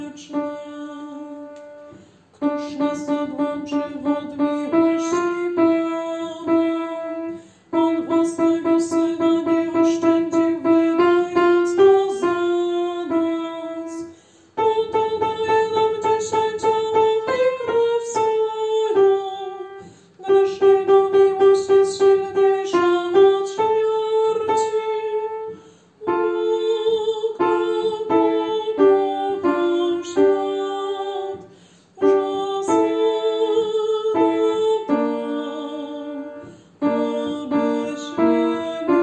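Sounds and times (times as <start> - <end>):
soprano voices singing: 0.0 - 39.0.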